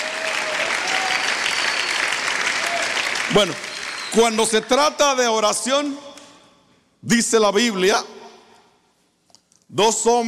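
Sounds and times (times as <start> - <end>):
audience applause: 0.0 - 4.5
speech: 3.3 - 6.1, 7.0 - 8.2, 9.7 - 10.2.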